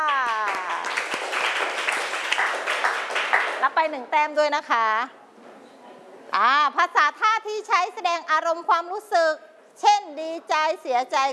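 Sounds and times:
class of children clapping hands: 0.0 - 3.6
speech: 3.6 - 5.2, 6.3 - 11.3.

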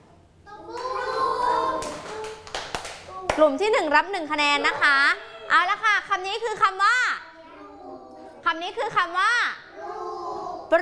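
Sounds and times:
children chanting in a sing-song tone: 0.5 - 2.4, 7.4 - 8.4, 9.7 - 10.7
speech: 3.4 - 7.1, 8.5 - 9.5.

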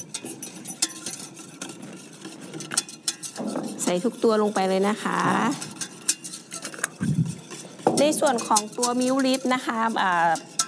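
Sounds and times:
whisk stirring a liquid mixture containing dissolved vitamin B3 in a bowl: 0.0 - 10.6
speech: 3.9 - 5.7, 8.0 - 10.5.

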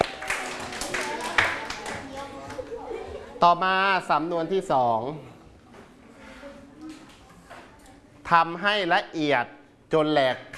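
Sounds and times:
students clapping for themselves: 0.0 - 2.6
speech: 3.4 - 5.3, 8.3 - 10.5.

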